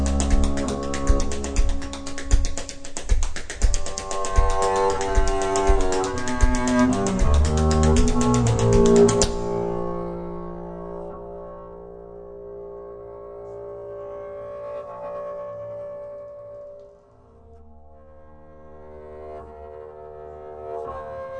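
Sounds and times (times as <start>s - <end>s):
double bass duo playing experimental contemporary jazz improvisation: 0.0s - 2.8s, 3.6s - 16.4s.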